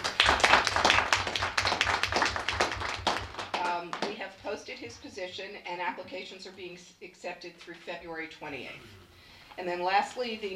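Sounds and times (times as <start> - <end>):
audience clapping: 0.0 - 4.2
speech: 4.9 - 9.0, 9.6 - 10.5.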